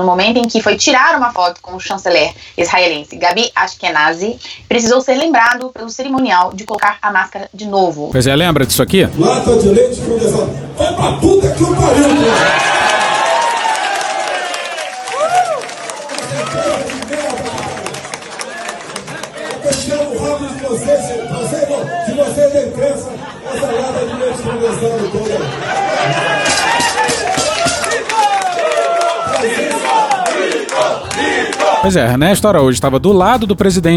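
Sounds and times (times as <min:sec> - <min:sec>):
speech: 0:00.0 - 0:13.0, 0:31.2 - 0:33.9
people laughing: 0:11.8 - 0:13.4, 0:22.4 - 0:27.3
crowd applauding: 0:11.9 - 0:21.6, 0:25.4 - 0:32.2
crowd chanting: 0:28.3 - 0:31.9.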